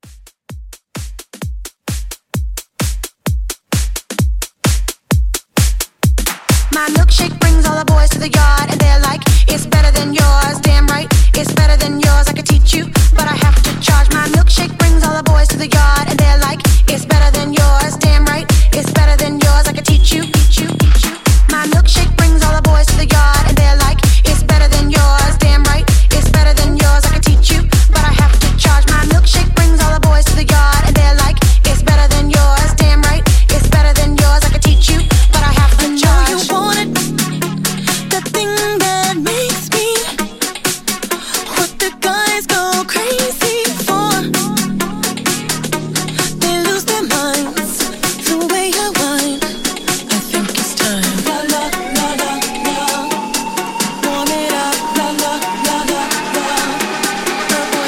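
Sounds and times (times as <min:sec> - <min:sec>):
club mashup music: 0:00.0 - 0:57.8.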